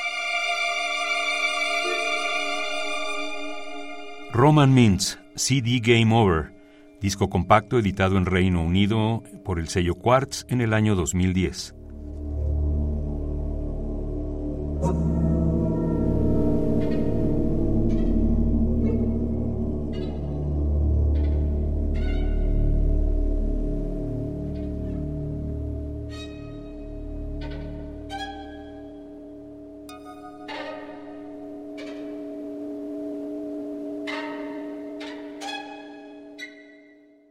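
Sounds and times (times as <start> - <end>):
two violins: 0.0 - 6.0, 26.0 - 29.2, 35.0 - 36.5
electroacoustic sounds: 1.0 - 37.3
speech: 4.4 - 11.8.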